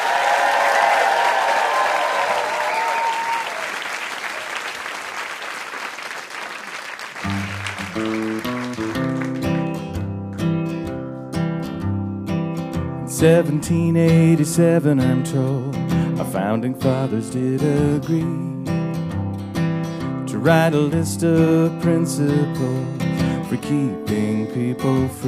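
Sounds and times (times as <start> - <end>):
audience applauding game-show contestants: 0.0 - 10.0
music: 7.2 - 25.2
speech: 13.2 - 18.5, 20.4 - 25.2.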